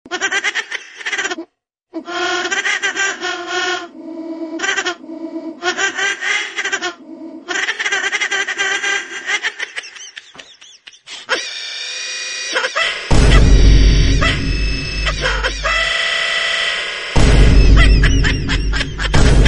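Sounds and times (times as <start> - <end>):
glitch laughing meme: 0.2 - 19.4.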